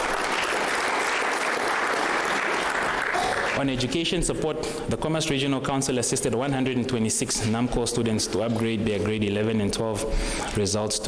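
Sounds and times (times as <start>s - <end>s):
audience applause at a regional council address: 0.0s - 3.8s
speech: 3.6s - 11.0s.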